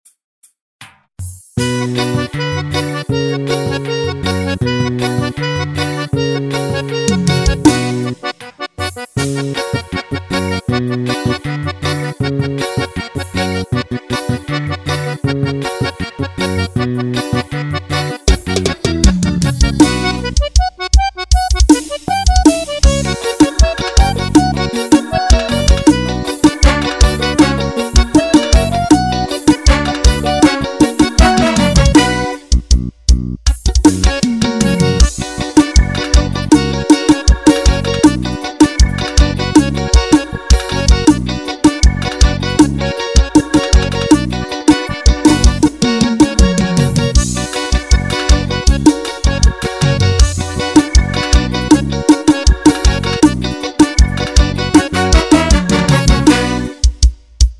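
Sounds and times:
forró music: 0.8s - 57.5s.

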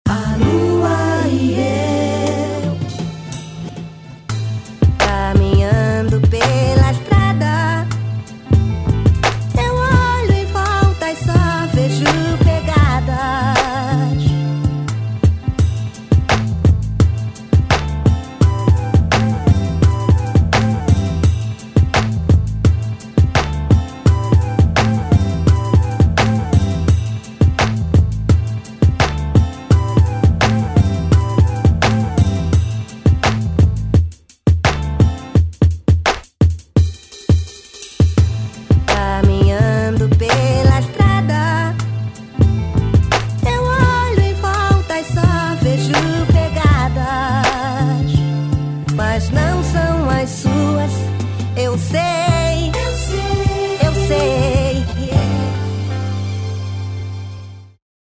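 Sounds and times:
music beat: 0.1s - 57.2s.

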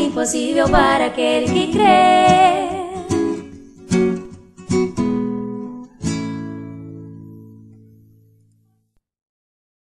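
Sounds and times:
voice: 0.0s - 3.4s
acoustic guitar: 0.0s - 8.8s.

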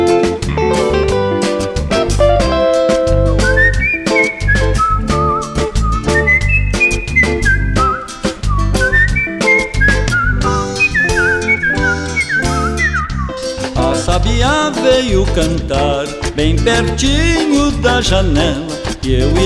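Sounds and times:
full band with steady drums and bass: 0.0s - 19.4s
person whistling imitating a sabiá thrush's song: 3.2s - 13.5s
speech: 16.4s - 19.4s.

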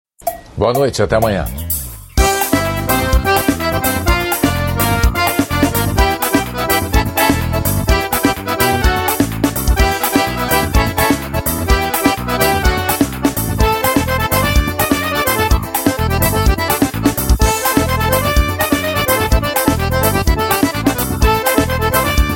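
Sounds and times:
forró music opening: 0.2s - 22.3s.

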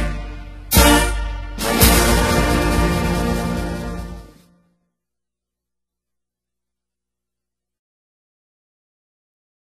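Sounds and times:
state anthem being sung: 0.0s - 4.4s.

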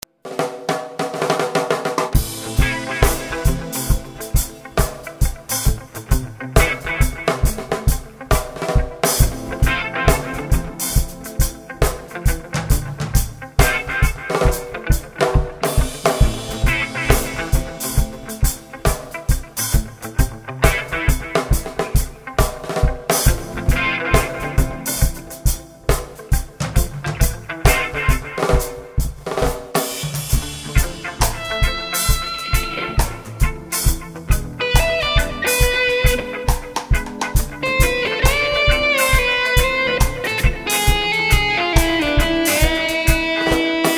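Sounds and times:
reggae jam: 0.0s - 43.9s.

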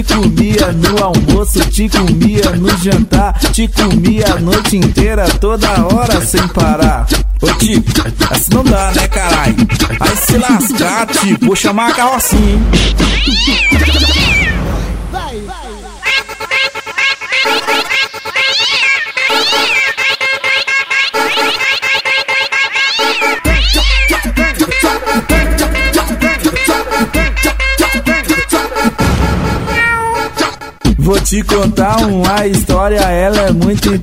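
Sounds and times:
speech: 0.0s - 15.7s, 31.1s - 34.0s
rhythmic musical backing of a comic Portuguese song: 0.0s - 34.0s
cat meowing in a comic song: 13.0s - 14.6s, 17.3s - 20.0s, 22.6s - 24.2s, 29.7s - 30.4s.

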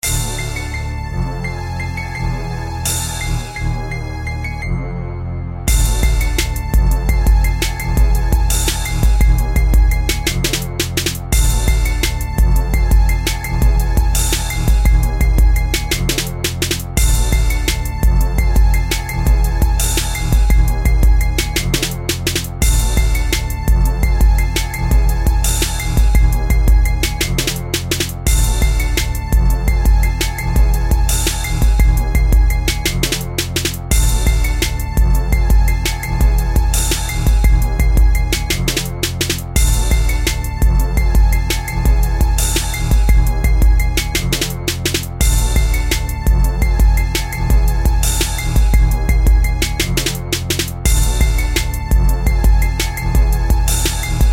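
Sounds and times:
instrumental rap beat: 0.0s - 5.0s, 5.7s - 54.3s.

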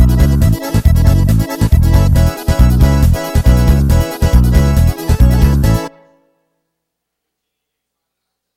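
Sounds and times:
forró music: 0.0s - 6.7s.

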